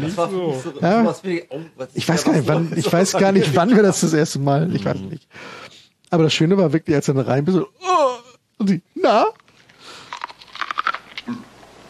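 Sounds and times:
speech: 0.0s - 7.9s, 8.6s - 9.4s
crunchy chewing of raw corn fresh from the field: 9.4s - 11.8s.

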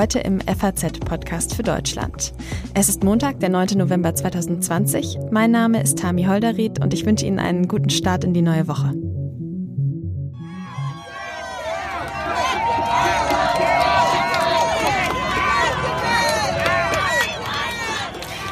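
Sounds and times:
speech: 0.0s - 9.2s
crowd cheering and celebrating in the street: 10.4s - 18.5s.

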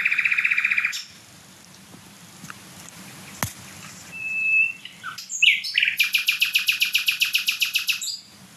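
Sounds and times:
small songbird singing loudly, smaller than a blackbird: 0.0s - 1.2s, 3.0s - 8.4s.

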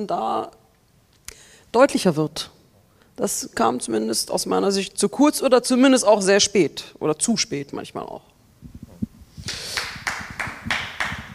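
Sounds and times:
speech: 0.0s - 0.6s, 1.7s - 2.6s, 3.2s - 8.3s
audience clapping: 9.5s - 11.3s.

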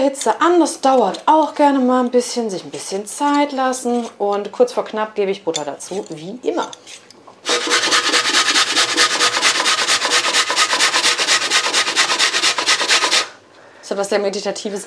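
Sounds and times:
speech: 0.0s - 7.9s, 13.9s - 14.8s
potatoes being grated on a grater: 7.5s - 13.3s.

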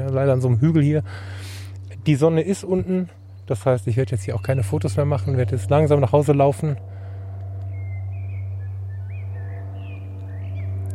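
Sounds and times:
airplane flying overhead: 0.0s - 10.9s
speech: 0.1s - 6.9s
bird chirps: 2.9s - 6.0s, 7.6s - 10.9s.

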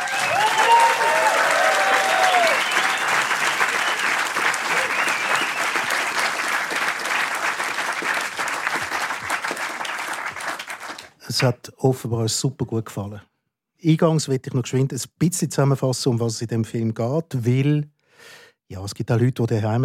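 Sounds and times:
audience whistles and cheers: 0.0s - 7.4s
sizable audience applause in a hall: 0.0s - 11.1s
speech: 11.4s - 19.8s.

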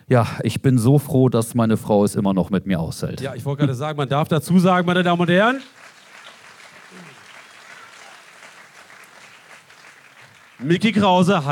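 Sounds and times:
speech: 0.1s - 5.8s, 10.6s - 11.4s
crowd applause: 4.7s - 11.4s.

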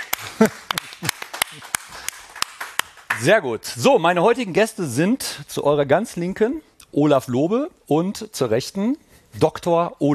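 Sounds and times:
scattered audience hand claps: 0.0s - 3.4s
speech: 0.4s - 1.1s, 3.2s - 10.1s.

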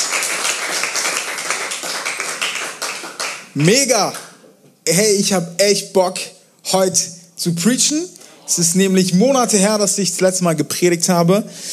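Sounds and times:
audience applause for the youth pastor: 0.0s - 3.8s
speech: 3.6s - 4.2s, 4.8s - 11.7s.

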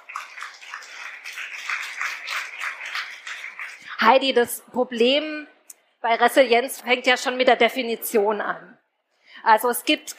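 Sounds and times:
audience applause for a guest: 0.0s - 4.0s
speech: 4.0s - 8.8s, 9.4s - 10.1s.

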